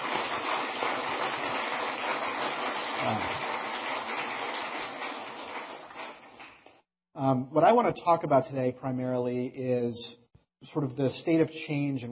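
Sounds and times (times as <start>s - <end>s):
audience applause: 0.0s - 6.8s
speech: 3.0s - 3.4s, 7.2s - 12.1s.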